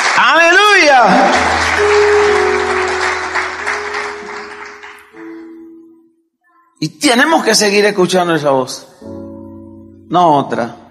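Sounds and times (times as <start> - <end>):
audience applauding loudly: 0.0 - 5.4
sustained tone: 1.3 - 6.1
speech: 6.8 - 9.1, 10.1 - 10.8.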